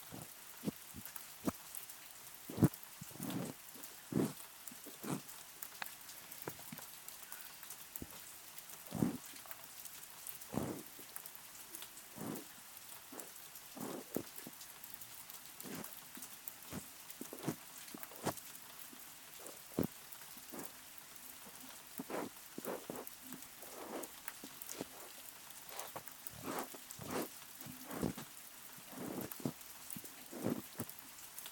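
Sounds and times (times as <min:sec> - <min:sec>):
ear massage sounds: 0:00.0 - 0:01.6, 0:02.5 - 0:05.3, 0:08.9 - 0:09.4, 0:10.5 - 0:11.0, 0:12.1 - 0:14.5, 0:15.6 - 0:15.9, 0:16.7 - 0:18.5, 0:19.4 - 0:20.8, 0:21.4 - 0:31.0
rain: 0:00.0 - 0:31.5.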